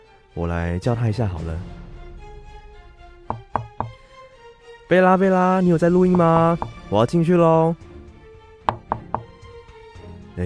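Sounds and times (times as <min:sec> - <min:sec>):
speech: 0:00.4 - 0:01.8, 0:04.9 - 0:07.9
knocking on a door: 0:03.3 - 0:04.0, 0:06.1 - 0:06.8, 0:08.7 - 0:09.4.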